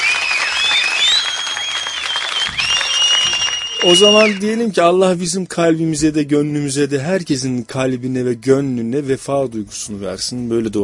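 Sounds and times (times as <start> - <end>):
audience applause: 0.0 - 4.4
speech: 3.8 - 10.8.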